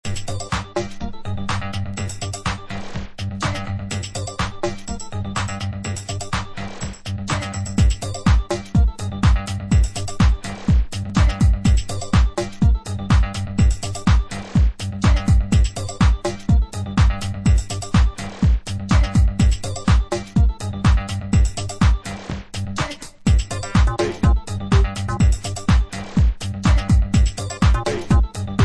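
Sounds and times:
hybrid house mix: 0.0 - 28.6.

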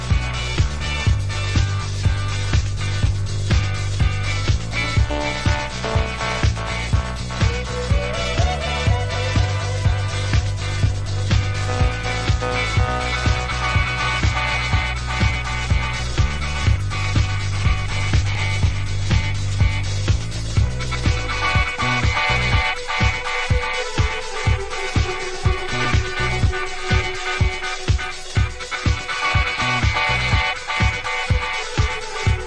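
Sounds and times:
instrumental music: 0.0 - 32.4.

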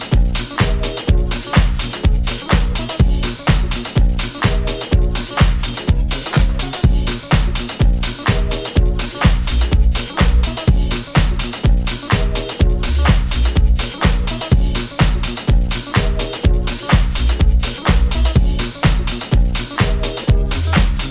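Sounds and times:
disco banger with a wonky bassline: 0.0 - 21.0.

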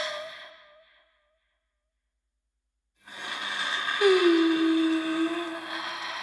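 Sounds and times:
a cappella vocals: 4.0 - 6.2.

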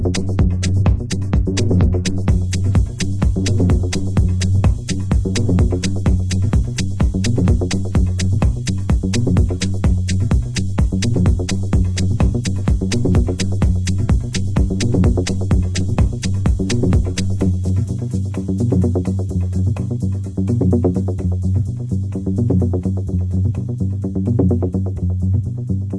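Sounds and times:
bass mix: 0.0 - 25.9.

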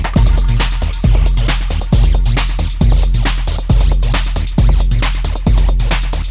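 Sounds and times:
tonal percussion: 0.1 - 6.1.

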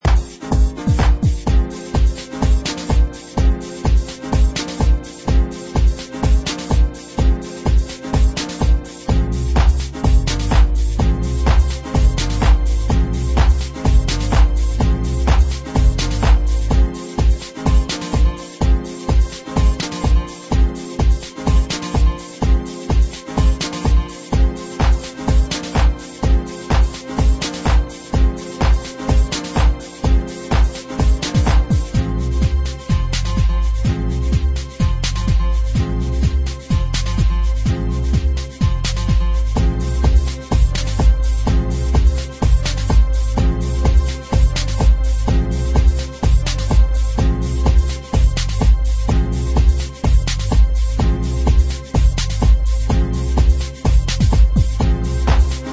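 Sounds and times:
acid techno music: 0.0 - 55.7.

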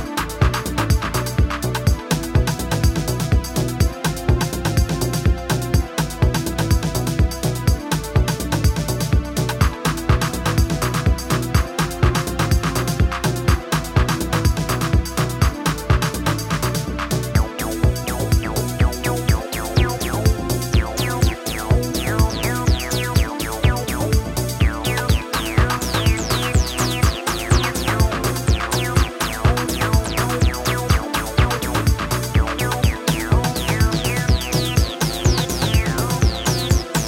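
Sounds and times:
bass drum patterns: 0.0 - 37.0.

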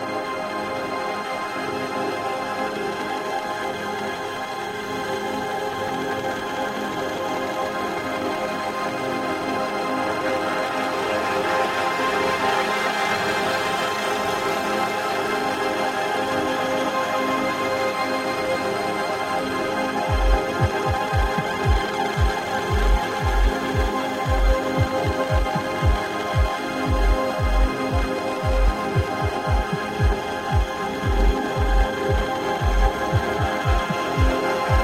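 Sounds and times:
ambient music: 0.0 - 34.8.

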